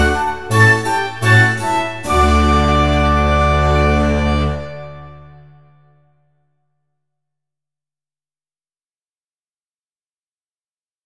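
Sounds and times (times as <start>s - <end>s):
slow allegro music: 0.0s - 6.0s.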